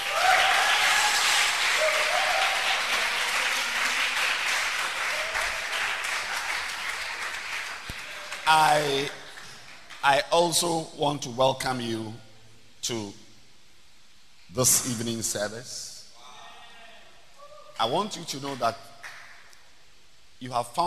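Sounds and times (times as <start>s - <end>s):
audience clapping hands: 0.0s - 10.3s, 18.4s - 19.5s
speech: 8.5s - 9.2s, 10.0s - 13.2s, 14.5s - 15.9s, 17.8s - 18.9s, 20.4s - 20.8s.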